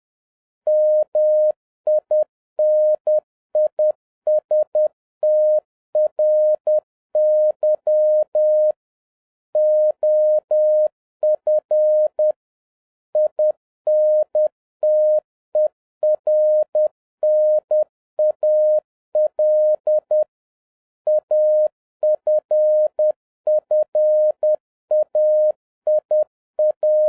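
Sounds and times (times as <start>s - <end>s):
Morse code beeps at 10 words per minute: 0.7s - 8.7s, 9.6s - 12.3s, 13.2s - 20.2s, 21.1s - 27.0s.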